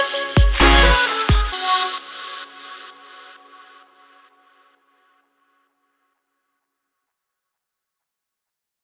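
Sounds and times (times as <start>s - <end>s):
electro music: 0.0s - 2.8s.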